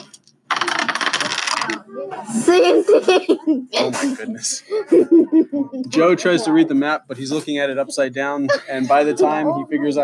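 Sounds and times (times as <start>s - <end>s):
dice being re-rolled: 0.0s - 1.8s
speech: 1.6s - 10.0s
laughter: 2.2s - 6.6s.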